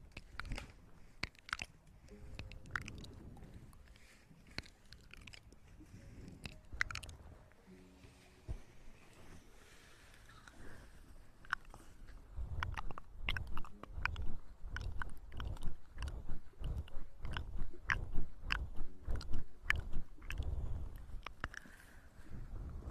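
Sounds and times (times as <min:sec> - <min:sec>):
ear eating wet clicks and mouth smacks: 0:00.0 - 0:03.9, 0:04.5 - 0:05.6, 0:06.3 - 0:07.2, 0:11.4 - 0:11.8, 0:12.4 - 0:21.7
ear massage crackly rubbing: 0:00.0 - 0:22.9.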